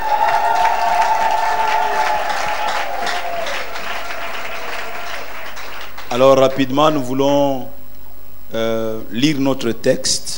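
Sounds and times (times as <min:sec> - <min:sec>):
high vocal cheer: 0:00.0 - 0:05.6
church congregation applauding: 0:00.0 - 0:07.4
speech: 0:06.2 - 0:07.8, 0:08.5 - 0:10.3.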